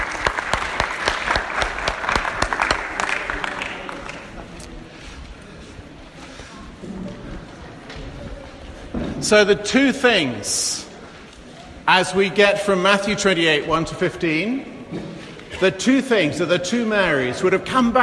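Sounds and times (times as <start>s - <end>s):
audience applause: 0.0s - 4.5s
speech: 9.3s - 10.8s, 11.9s - 18.0s.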